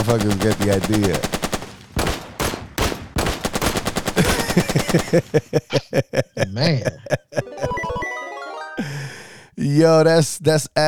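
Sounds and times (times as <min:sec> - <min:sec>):
speech: 0:00.0 - 0:01.4, 0:04.6 - 0:08.0, 0:09.6 - 0:10.8
gunshot sound effects: 0:00.0 - 0:05.4
laughter: 0:04.2 - 0:09.1.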